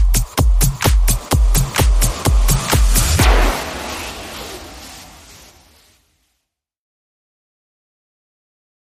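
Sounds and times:
music beat: 0.0 - 3.9.

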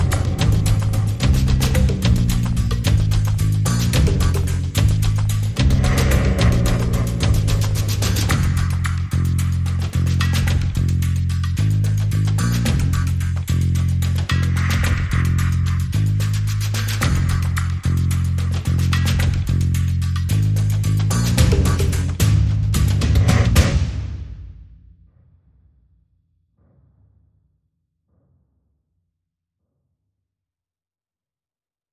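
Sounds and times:
bass: 0.0 - 24.4
drums: 0.0 - 24.9.

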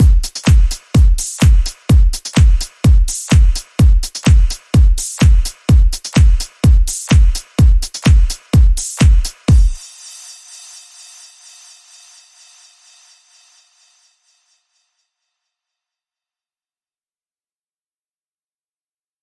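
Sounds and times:
music beat: 0.0 - 13.4.

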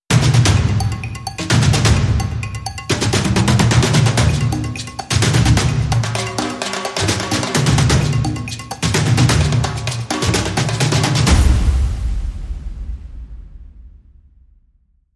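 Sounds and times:
Afro-Cuban music: 0.1 - 12.2.

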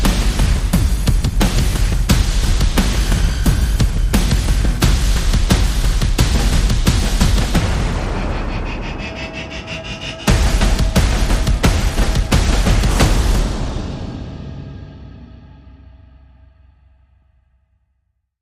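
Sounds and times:
percussion: 0.0 - 16.9
sound effects: 7.4 - 14.7.

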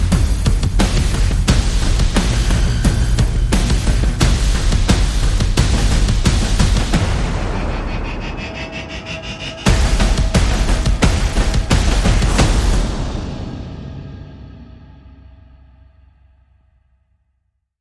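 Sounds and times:
percussion: 0.0 - 16.8
pulses: 1.9 - 12.8.

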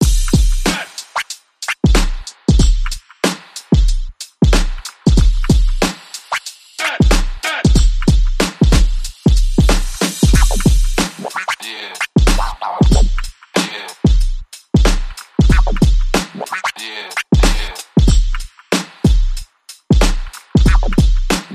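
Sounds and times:
drums: 0.0 - 21.5
vocal chops: 0.7 - 1.2, 6.8 - 7.8, 10.4 - 14.1, 16.3 - 17.9.

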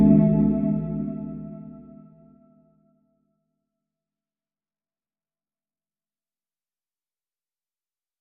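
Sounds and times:
suspense music: 0.0 - 2.2.

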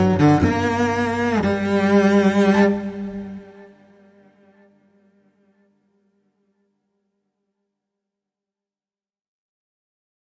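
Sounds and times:
solo cello playing: 0.0 - 4.8.

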